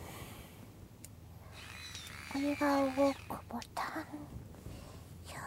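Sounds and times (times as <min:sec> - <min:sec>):
thrusting vibrator buzzing: 0:01.4 - 0:04.2
person giving live commentary while masturbating: 0:01.6 - 0:04.3.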